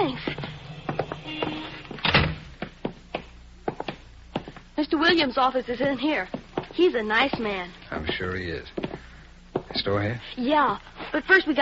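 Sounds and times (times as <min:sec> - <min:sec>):
door opened and shut: 0:00.3 - 0:02.5
speech: 0:05.0 - 0:08.8, 0:09.8 - 0:11.6.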